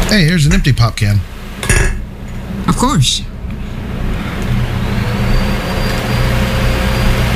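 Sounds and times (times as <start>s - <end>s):
speech: 0.1s - 1.8s, 2.7s - 3.3s
high-pitched vacuum cleaner: 4.7s - 7.3s.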